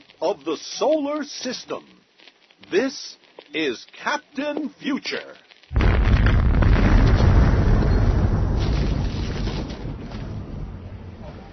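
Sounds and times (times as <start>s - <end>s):
speech: 0.2s - 2.0s, 2.7s - 5.4s
thermonuclear blast destroying the spaceship Fool's Gold: 5.7s - 11.5s.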